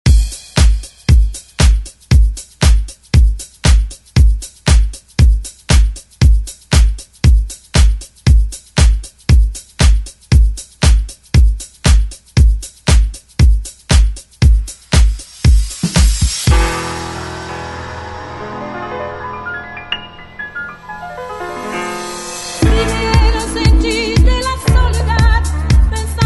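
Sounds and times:
1970s drum beat: 0.0 - 17.2, 22.4 - 26.2.

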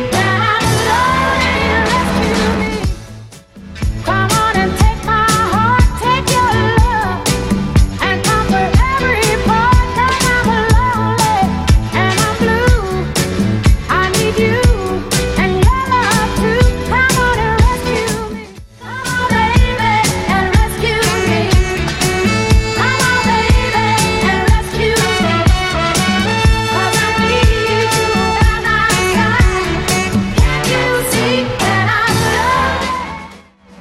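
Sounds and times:
sixties style drum machine beat: 0.1 - 32.4.

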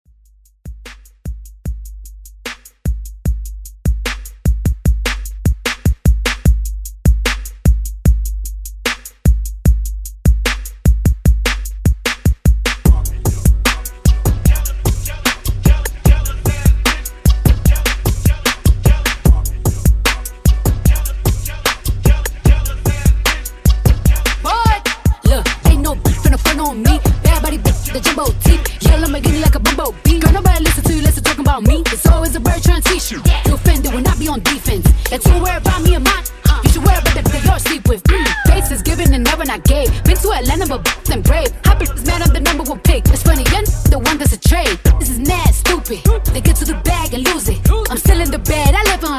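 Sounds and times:
hip hop beat: 0.0 - 49.1.

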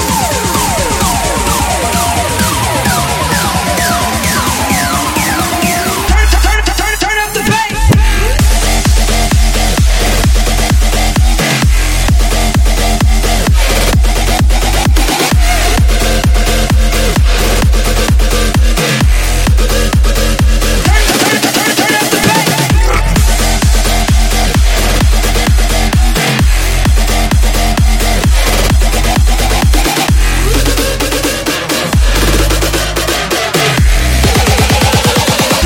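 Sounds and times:
funk bootleg music at 130 BPM: 0.0 - 35.6.

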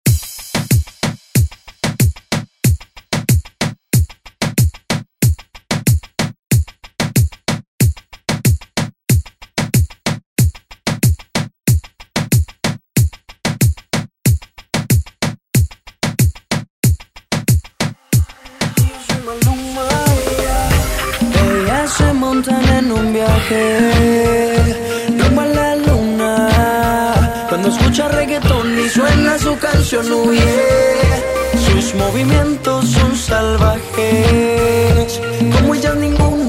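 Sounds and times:
drum: 0.0 - 36.4.

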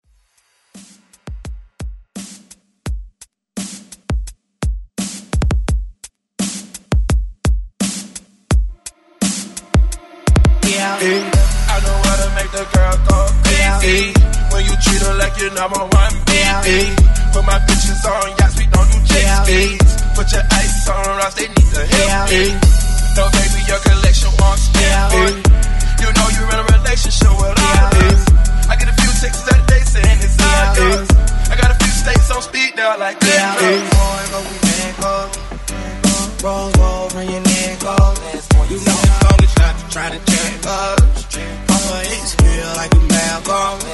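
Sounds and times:
85 BPM music beat: 0.7 - 43.9.

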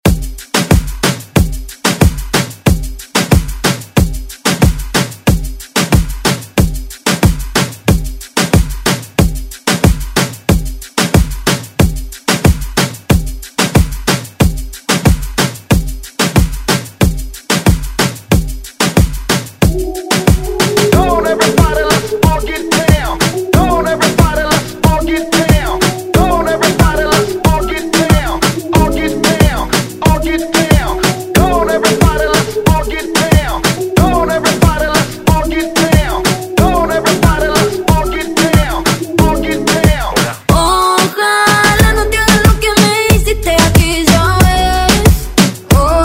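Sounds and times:
moombahton hype intro music: 0.0 - 46.0.

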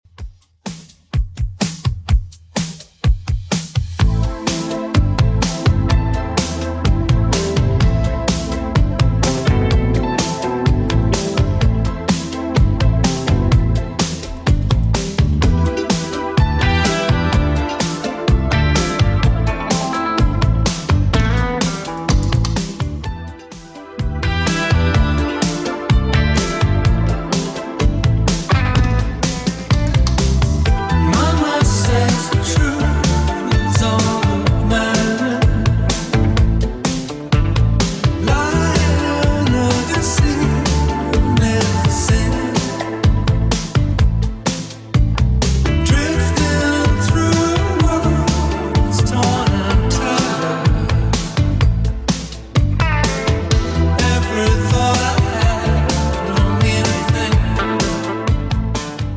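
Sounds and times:
80s style music at 126 bpm: 0.1 - 59.1.

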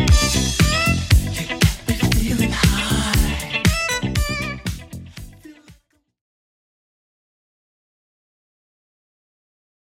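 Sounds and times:
80s drum beat at 118 bpm: 0.0 - 5.4.

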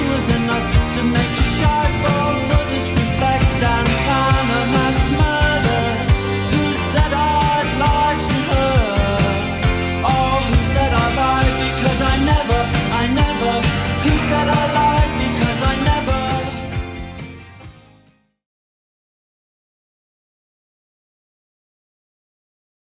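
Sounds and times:
80s Redrum drum machine beat: 0.0 - 17.3.

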